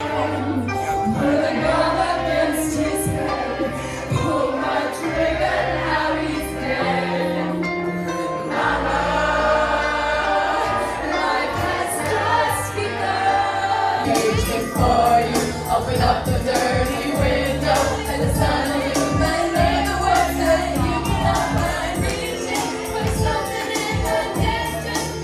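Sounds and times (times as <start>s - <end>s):
off-key karaoke singing: 0.0s - 25.2s.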